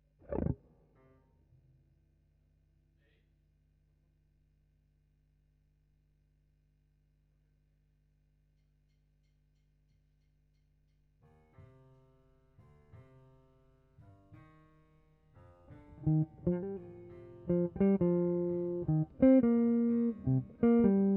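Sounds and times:
guitar: 0.2 - 0.6, 15.4 - 21.1.

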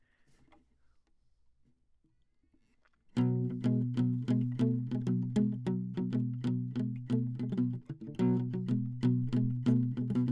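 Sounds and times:
classical guitar: 3.2 - 10.3.

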